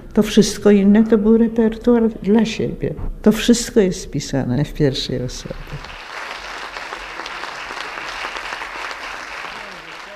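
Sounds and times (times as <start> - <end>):
speech: 0.2 - 5.9
hand clapping: 5.7 - 10.1.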